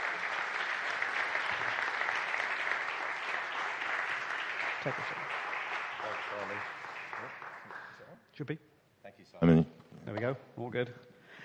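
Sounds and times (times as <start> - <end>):
applause welcoming the Labour Party's parliamentary candidate: 0.0 - 8.2
speech: 4.8 - 5.4, 6.3 - 7.4, 8.4 - 8.7, 9.3 - 11.1.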